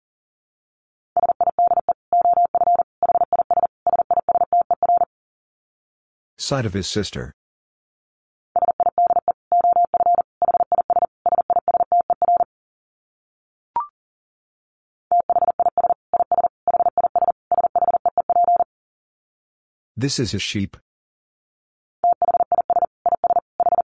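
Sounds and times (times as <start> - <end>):
fast Morse code tones at about 40 words per minute: 1.2 - 5.1, 8.6 - 12.5, 15.1 - 18.7, 22.0 - 23.8
speech: 6.4 - 7.4, 20.0 - 20.9.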